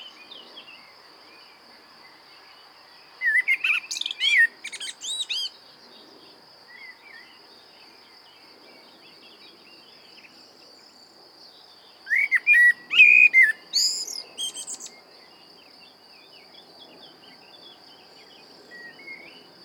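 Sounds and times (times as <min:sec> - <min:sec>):
common blackbird singing: 0:03.2 - 0:05.5, 0:12.1 - 0:15.0.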